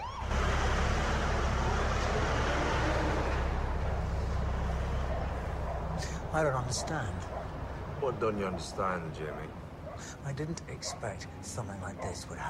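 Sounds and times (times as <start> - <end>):
ambulance siren: 0.0 - 5.8
ambulance engine and road rumble: 0.0 - 12.4
speech: 6.3 - 12.4.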